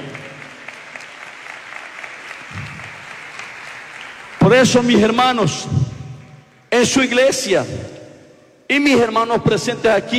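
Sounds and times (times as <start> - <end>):
audience applause: 0.0 - 4.9
speech: 4.5 - 5.8, 6.8 - 8.0, 8.7 - 10.1.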